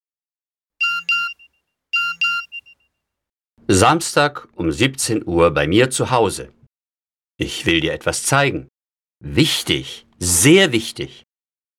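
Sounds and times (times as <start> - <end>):
phone text message alert chimes: 0.8 - 2.8
speech: 3.7 - 6.6, 7.4 - 11.2.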